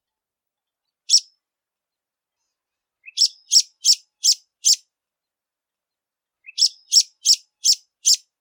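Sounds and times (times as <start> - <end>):
degolado bird singing: 3.0 - 4.8, 6.4 - 8.2.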